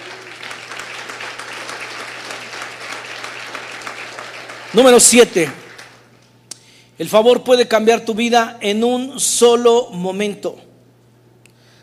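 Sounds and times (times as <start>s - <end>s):
audience applause: 0.0s - 6.1s
speech: 4.7s - 5.6s, 7.0s - 10.7s.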